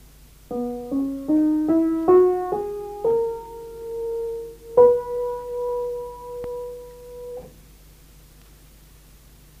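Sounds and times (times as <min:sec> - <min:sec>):
diatonic scale of C major played: 0:00.5 - 0:07.5.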